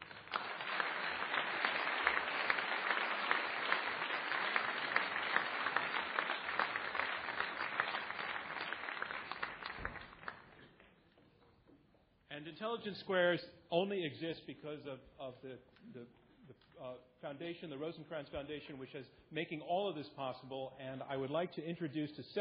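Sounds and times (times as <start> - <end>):
debate audience applause welcoming the debaters onto the stage: 0.0 - 10.7
speech: 12.6 - 16.2, 16.8 - 22.4.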